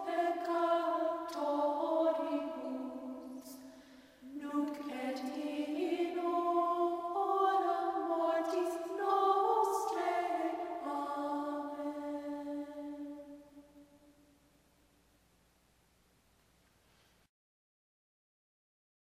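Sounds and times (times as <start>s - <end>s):
Gregorian chant: 0.0s - 13.7s.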